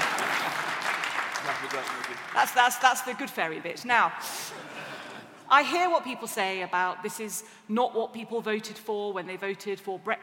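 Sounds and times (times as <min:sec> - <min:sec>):
audience applause: 0:00.0 - 0:02.6
speech: 0:01.5 - 0:04.8, 0:05.5 - 0:10.2.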